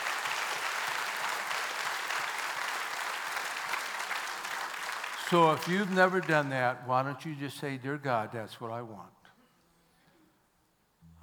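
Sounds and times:
audience applause: 0:00.0 - 0:06.6
speech: 0:05.3 - 0:09.2.

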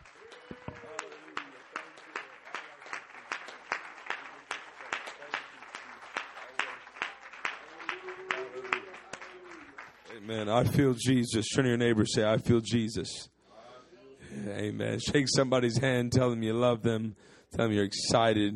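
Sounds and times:
audience clapping hands: 0:00.0 - 0:11.0
speech: 0:10.3 - 0:13.3, 0:14.6 - 0:18.5.

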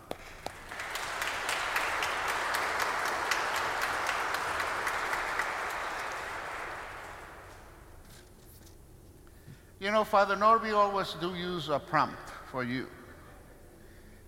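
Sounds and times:
audience applause: 0:00.0 - 0:08.0
speech: 0:09.8 - 0:13.0.

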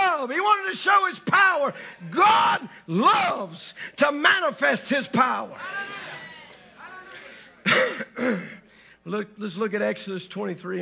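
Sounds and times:
speech: 0:00.2 - 0:06.0, 0:07.7 - 0:10.8
throat clearing during a church sermon: 0:07.6 - 0:08.6.

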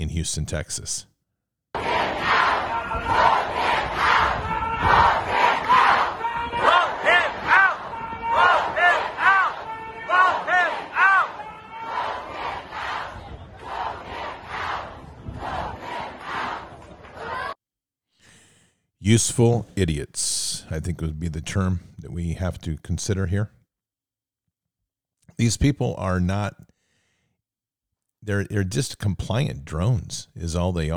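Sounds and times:
speech: 0:00.0 - 0:01.1, 0:03.0 - 0:03.6, 0:19.1 - 0:23.6, 0:25.4 - 0:26.7, 0:28.2 - 0:30.9
protesters chanting outside the NRA convention in Houston, Texas: 0:01.7 - 0:17.6.

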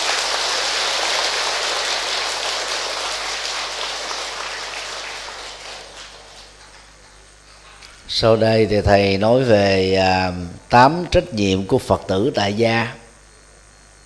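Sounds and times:
loud applause: 0:00.0 - 0:06.9
speech: 0:08.2 - 0:13.0.

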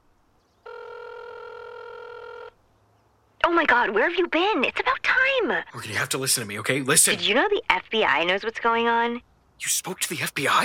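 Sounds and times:
electronic telephone ring tone: 0:00.6 - 0:02.6
speech: 0:03.5 - 0:10.6.

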